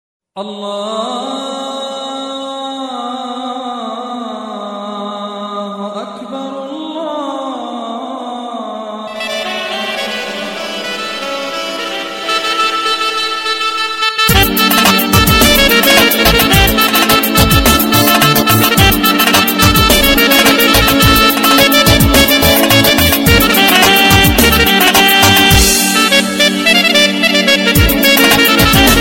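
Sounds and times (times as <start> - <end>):
Arabic music mix: 0.4 - 29.0.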